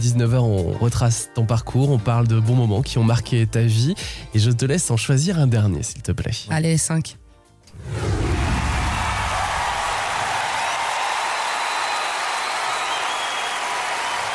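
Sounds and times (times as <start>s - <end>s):
speech: 0.0s - 7.2s
crowd applause: 8.1s - 14.3s.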